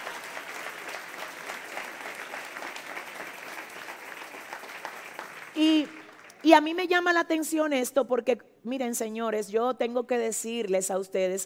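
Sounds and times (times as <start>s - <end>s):
audience applauding: 0.0s - 6.6s
speech: 5.6s - 11.4s.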